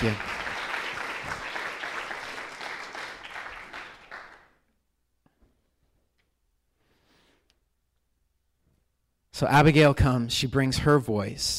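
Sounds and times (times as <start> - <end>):
speech: 0.0 - 0.3, 9.4 - 11.5
audience applause: 0.0 - 4.6.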